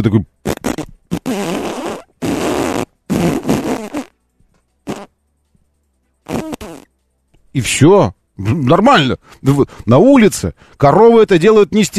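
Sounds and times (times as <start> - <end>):
speech: 0.0 - 0.3, 7.6 - 11.9
fart: 0.4 - 4.2, 4.8 - 5.1, 6.2 - 6.9.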